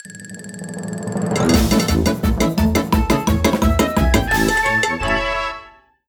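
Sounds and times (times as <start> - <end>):
results screen jingle music: 1.4 - 5.9.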